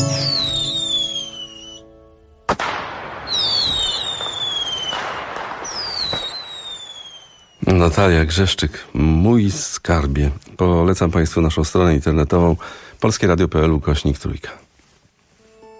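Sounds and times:
fireworks whistling: 0.0 - 1.9, 2.5 - 8.0
fireworks crackling hiss: 0.0 - 15.7
firework bang: 2.5 - 7.7
speech: 7.9 - 14.6.

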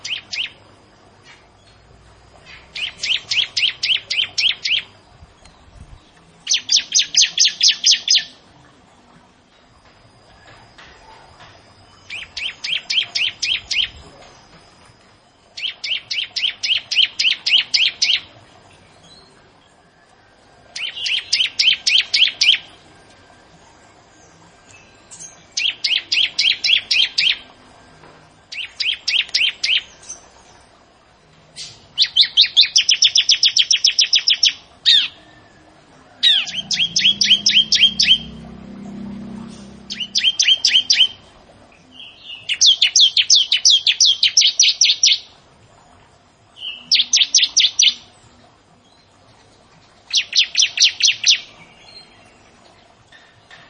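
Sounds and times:
Bar-winged prinia high chirping song: 0.0 - 0.6, 2.4 - 8.4, 11.9 - 14.2, 15.6 - 18.3, 20.8 - 22.7, 24.7 - 27.5, 28.5 - 30.2, 31.6 - 35.2, 36.2 - 38.9, 39.6 - 41.2, 41.9 - 45.3, 46.6 - 48.0, 50.1 - 52.3.

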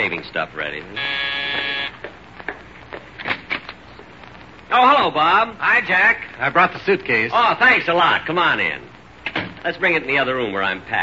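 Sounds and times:
speech: 0.0 - 1.7, 4.7 - 8.9, 9.6 - 11.0
door buzzer: 1.0 - 2.1.

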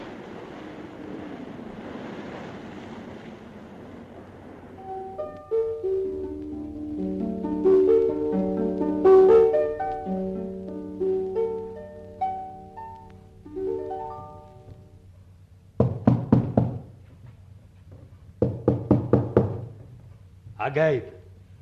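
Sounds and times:
music: 4.8 - 15.1
knocking on a wooden door in a One Thousand and One Nights drama: 15.8 - 16.9, 18.4 - 19.8
speech: 20.7 - 21.1.

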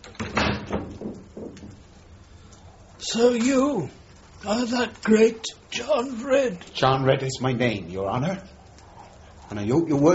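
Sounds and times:
door closing: 0.0 - 1.8
speech: 3.0 - 8.6, 9.5 - 10.1.

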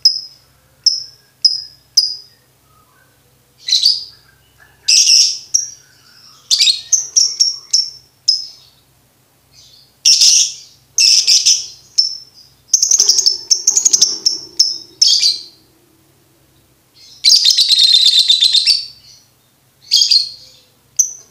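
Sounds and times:
lovebird chatter: 3.6 - 8.8, 9.6 - 21.2.

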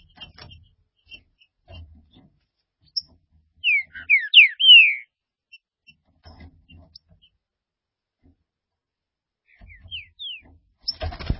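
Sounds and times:
green-winged saltator whistled song: 3.6 - 5.1, 9.6 - 10.4.

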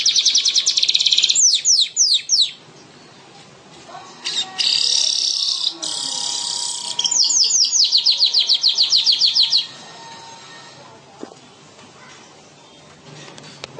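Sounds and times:
bird singing fast high-pitched repeated chirps: 0.0 - 2.6, 4.2 - 9.8.

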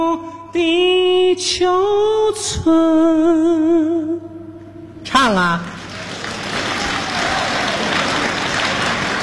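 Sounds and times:
speech: 0.2 - 4.3, 5.2 - 5.8
audience applause: 5.8 - 9.2.

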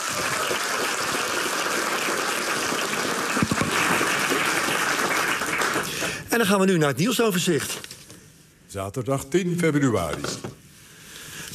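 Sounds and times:
studio audience applause at a radio news program: 0.0 - 6.2
speech: 6.4 - 7.9, 8.7 - 10.5.

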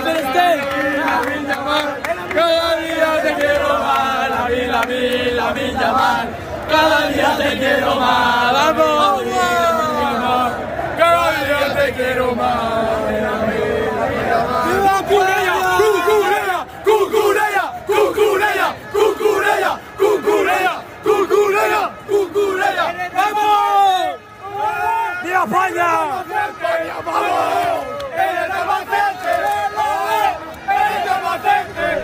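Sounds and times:
large crowd chanting at a night-time street celebration in Spain: 0.0 - 32.0.

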